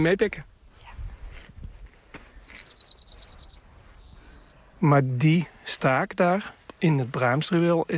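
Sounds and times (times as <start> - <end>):
speech: 0.0 - 0.5, 4.8 - 7.9
stonechat singing: 2.3 - 4.8.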